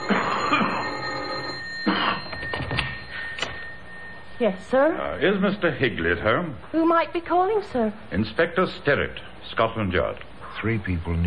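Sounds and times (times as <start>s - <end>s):
doorbell ringing: 0.0s - 6.1s
speech: 4.4s - 11.2s.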